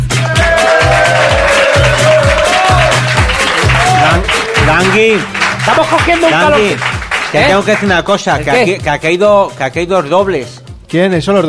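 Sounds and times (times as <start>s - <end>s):
audience applause and cheering at a live radio show: 0.0s - 7.9s
speech: 5.0s - 11.4s.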